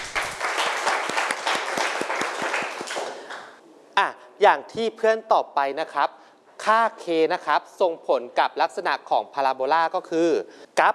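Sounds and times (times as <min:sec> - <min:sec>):
classroom group applauding: 0:00.0 - 0:03.6
speech: 0:04.0 - 0:10.9.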